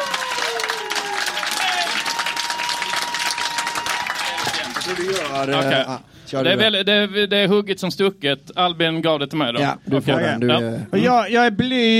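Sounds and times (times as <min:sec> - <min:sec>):
audience applauding: 0:00.0 - 0:05.9
speech: 0:04.9 - 0:11.9.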